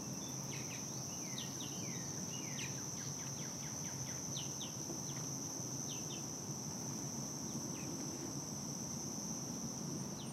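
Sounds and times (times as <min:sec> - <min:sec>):
high insect whine at dusk at Dyke Marsh: 0:00.0 - 0:10.3.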